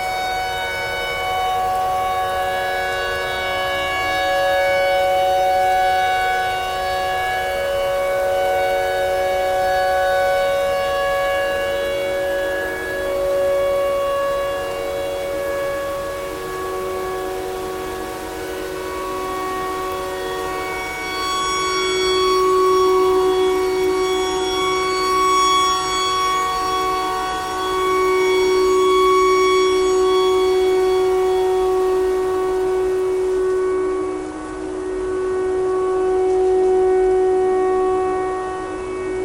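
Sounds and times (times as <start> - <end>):
tornado siren: 0.0 - 39.2.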